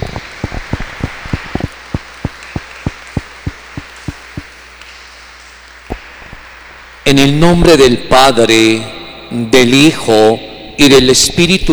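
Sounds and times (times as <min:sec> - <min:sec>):
small crowd clapping in a reverberant room: 0:00.0 - 0:06.9
speech: 0:07.1 - 0:11.7.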